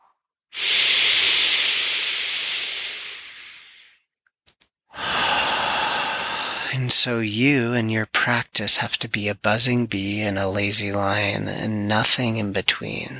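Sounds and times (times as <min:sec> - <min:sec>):
forceful exhale pushing air out: 0:00.5 - 0:04.0, 0:05.0 - 0:06.7
speech: 0:06.8 - 0:13.1.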